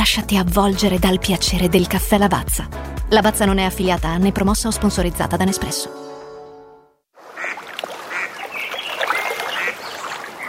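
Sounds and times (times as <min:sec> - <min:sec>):
speech: 0:00.0 - 0:06.1
lake ambience: 0:07.2 - 0:10.4.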